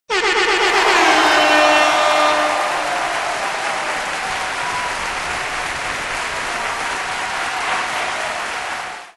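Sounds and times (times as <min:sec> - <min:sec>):
fanfare: 0:00.2 - 0:08.8.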